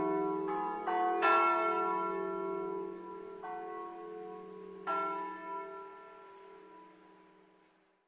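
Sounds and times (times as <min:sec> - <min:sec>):
bells ringing: 0:00.0 - 0:06.0
piano: 0:00.0 - 0:07.0.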